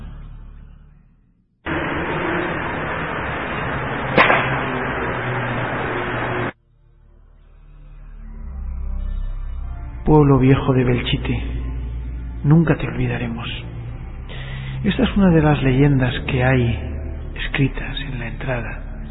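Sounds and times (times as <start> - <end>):
loud hissing static: 1.7 - 6.6
musket shot: 3.8 - 6.5
speech: 10.1 - 11.7, 12.4 - 13.8, 14.8 - 19.0.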